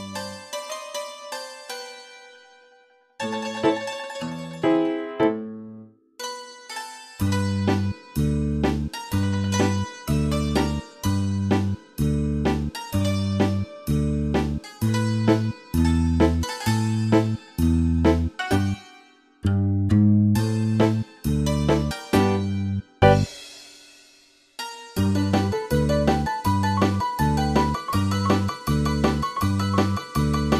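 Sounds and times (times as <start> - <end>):
sirtaki folk dance music: 3.2 - 5.6, 7.2 - 18.9, 20.4 - 22.5, 23.1 - 23.3, 25.0 - 30.5.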